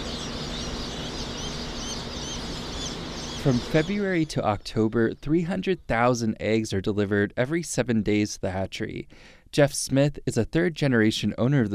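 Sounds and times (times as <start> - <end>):
thousands of freshly hatched chicks peeping at Cackle Hatchery in Lebanon, Missouri: 0.0 - 6.0
speech: 3.4 - 11.7.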